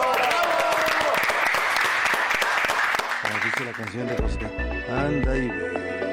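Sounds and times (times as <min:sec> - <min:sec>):
applause: 0:00.0 - 0:04.4
speech: 0:03.6 - 0:06.0.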